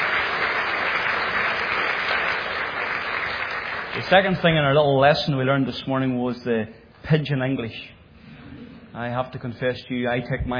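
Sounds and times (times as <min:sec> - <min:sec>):
audience applause: 0:00.0 - 0:04.6
speech: 0:04.0 - 0:08.0, 0:09.0 - 0:10.5.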